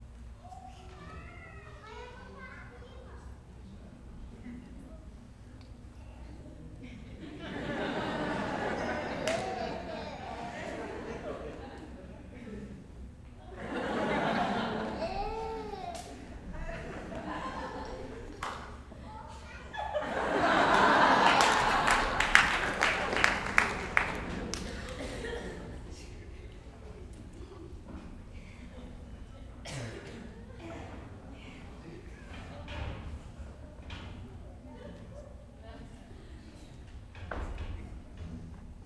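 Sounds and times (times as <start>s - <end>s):
audience and small child laughing: 6.8s - 27.0s
applause: 9.2s - 9.6s, 17.6s - 18.7s, 20.3s - 25.4s.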